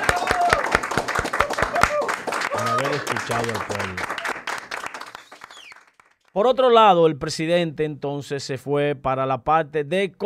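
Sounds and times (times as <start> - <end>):
applause: 0.0 - 6.4
speech: 3.0 - 4.3, 6.4 - 10.2.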